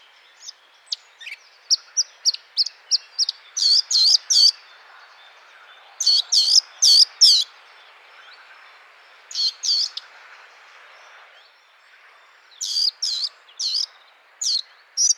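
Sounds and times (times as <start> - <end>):
Sylvia atricapilla singing: 0.4 - 4.6, 6.0 - 7.5, 9.3 - 10.0, 12.6 - 13.9, 14.4 - 15.1.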